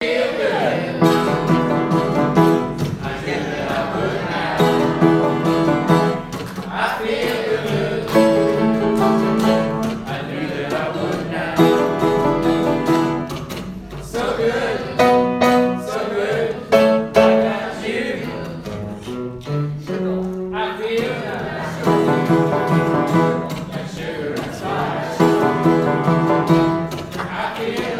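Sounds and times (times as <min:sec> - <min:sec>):
school choir singing: 0:00.0 - 0:19.1, 0:20.5 - 0:27.9.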